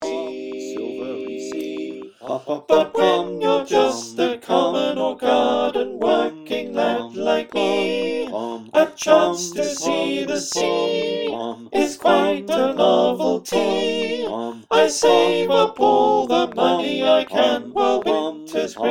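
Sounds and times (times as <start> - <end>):
soprano alto tenor bass choir singing: 0.0 - 18.8.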